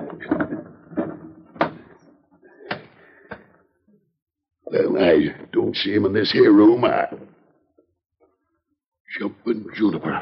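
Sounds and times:
wooden window shutters being opened: 0.0s - 2.0s
speech: 4.7s - 7.3s, 9.5s - 10.2s.

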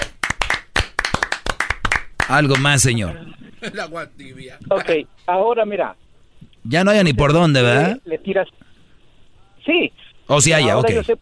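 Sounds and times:
applause clapping: 0.0s - 2.9s
speech: 2.3s - 6.0s, 6.6s - 8.6s, 9.6s - 11.2s.

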